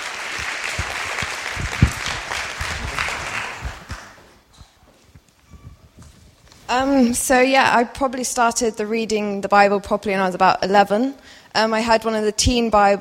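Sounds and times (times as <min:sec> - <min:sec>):
audience applause: 0:00.0 - 0:04.4
speech: 0:06.7 - 0:13.0.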